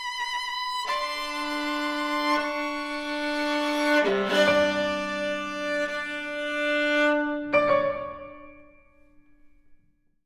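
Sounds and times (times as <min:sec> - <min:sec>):
viola and piano sonata: 0:00.0 - 0:09.0.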